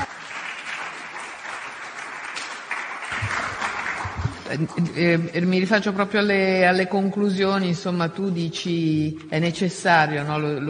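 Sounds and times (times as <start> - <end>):
audience applause: 0.0 - 5.2
speech: 4.5 - 10.6.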